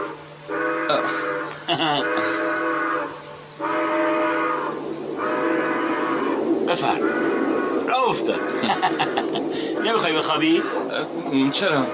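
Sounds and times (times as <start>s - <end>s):
steam train whistle blasts: 0.0s - 8.7s
low rumbling undertone: 0.0s - 11.9s
speech: 0.9s - 2.7s, 6.7s - 11.9s
laughter: 1.6s - 2.3s, 8.5s - 9.8s.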